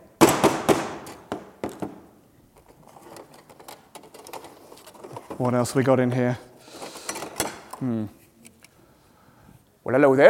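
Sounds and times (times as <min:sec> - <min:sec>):
hammer banging: 0:00.2 - 0:02.1
speech: 0:05.4 - 0:06.5, 0:07.8 - 0:08.2, 0:09.9 - 0:10.2.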